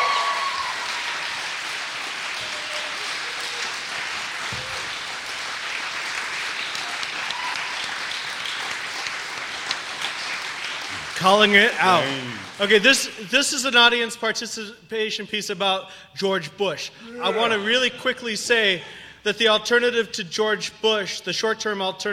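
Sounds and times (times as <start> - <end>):
audience applause at a live performance event: 0.0 - 13.2
speech: 11.2 - 22.1.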